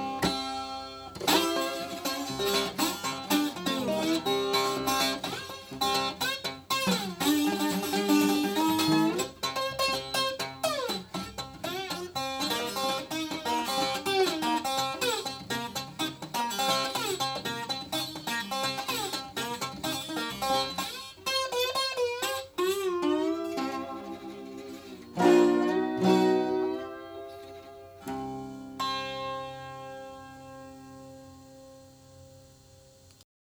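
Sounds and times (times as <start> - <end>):
Vox V240 Folk Twelve Electro 12-string electric and acoustic guitar c 1967: 0.0 - 33.2.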